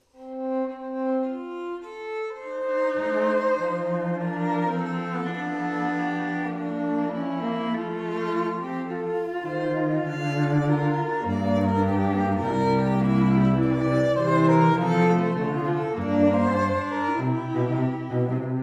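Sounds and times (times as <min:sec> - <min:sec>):
musical trio: 0:00.2 - 0:18.6.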